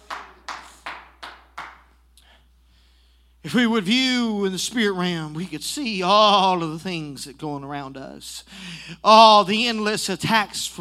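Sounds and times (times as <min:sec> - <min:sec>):
audience clapping hands: 0:00.0 - 0:02.0
speech: 0:03.4 - 0:10.7.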